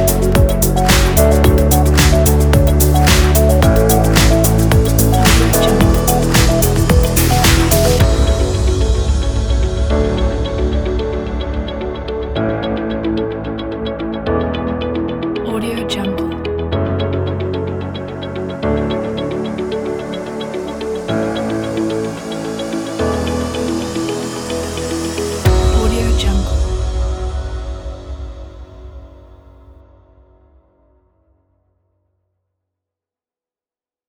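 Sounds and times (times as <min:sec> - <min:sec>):
upbeat business corporate music: 0:00.0 - 0:27.1.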